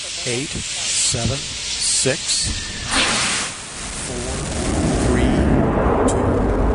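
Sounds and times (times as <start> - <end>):
hiss: 0.0 - 6.2
rocket main engine rushing roar: 3.8 - 6.7.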